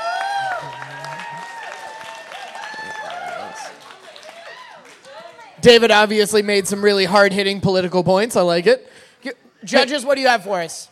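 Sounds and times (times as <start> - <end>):
audience applause and cheering: 0.0 - 5.5
speech: 5.6 - 10.8.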